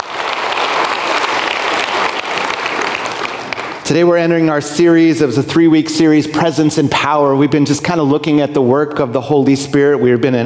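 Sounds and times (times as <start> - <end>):
crowd applauding for graduates: 0.0 - 3.9
speech: 3.9 - 10.4.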